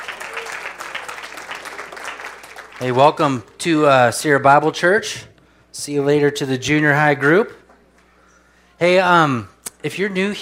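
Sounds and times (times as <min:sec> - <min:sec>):
congregation applauding at a church service: 0:00.0 - 0:03.9
speech: 0:02.8 - 0:07.6, 0:08.8 - 0:10.3.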